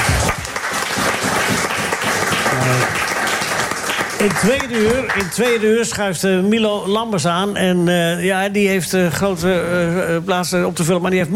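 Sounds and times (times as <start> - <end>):
audience applause: 0.0 - 5.7
speech: 4.2 - 11.3.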